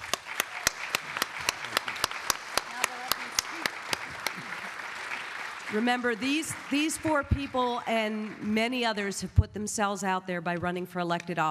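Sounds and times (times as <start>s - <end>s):
audience applause: 0.0s - 8.6s
speech: 5.7s - 11.5s.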